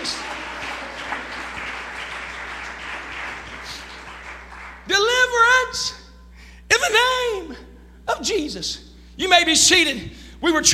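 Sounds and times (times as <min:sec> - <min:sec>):
audience clapping: 0:00.0 - 0:05.4
speech: 0:08.3 - 0:10.7.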